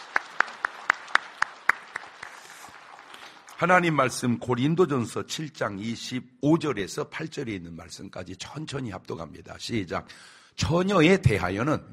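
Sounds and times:
audience applause welcoming a guest: 0.0s - 4.2s
speech: 3.6s - 11.9s.

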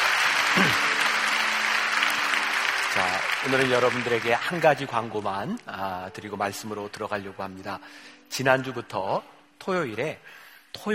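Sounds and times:
audience applause: 0.0s - 5.0s
speech: 3.4s - 10.9s.

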